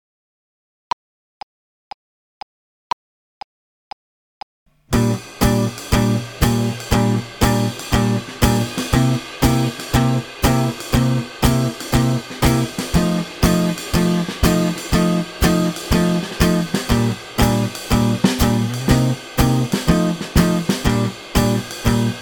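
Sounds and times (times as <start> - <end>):
slow swing music: 4.9 - 22.1.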